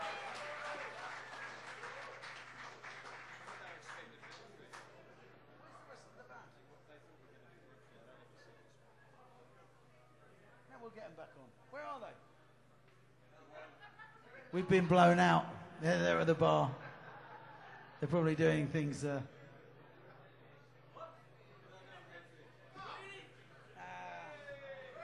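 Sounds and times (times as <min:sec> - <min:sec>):
audience applauding a band: 0:00.0 - 0:05.0
speech: 0:10.9 - 0:12.3, 0:14.5 - 0:16.8, 0:18.0 - 0:19.3
laughter: 0:13.5 - 0:14.5, 0:16.1 - 0:18.3.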